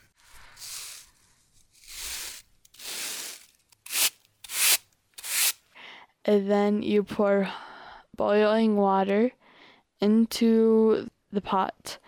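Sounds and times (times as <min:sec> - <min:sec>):
sweeping ground corn into a basket: 0:00.0 - 0:05.6
speech: 0:06.3 - 0:07.6, 0:08.2 - 0:09.4, 0:10.0 - 0:12.0.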